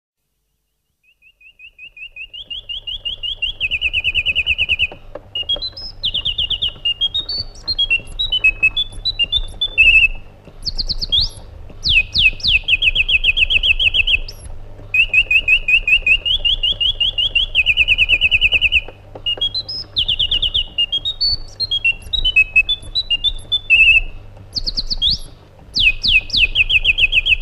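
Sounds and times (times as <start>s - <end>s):
white-eared bulbul singing: 1.0s - 27.3s.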